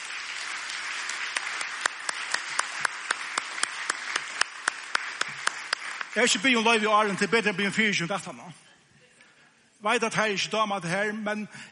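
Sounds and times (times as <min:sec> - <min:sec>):
crowd applause: 0:00.0 - 0:07.3
sharp evenly spaced rhythmic claps: 0:00.0 - 0:07.5
speech: 0:06.2 - 0:08.7, 0:09.8 - 0:11.7.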